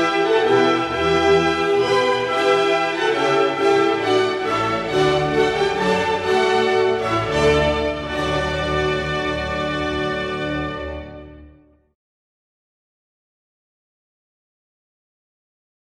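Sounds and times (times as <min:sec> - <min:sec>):
orchestra playing a baroque loure: 0:00.0 - 0:11.8.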